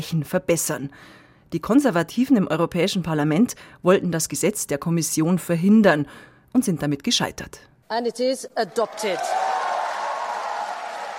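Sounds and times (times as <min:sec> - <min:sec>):
speech: 0:00.0 - 0:09.5
crowd cheering in the European Parliament: 0:08.6 - 0:11.1.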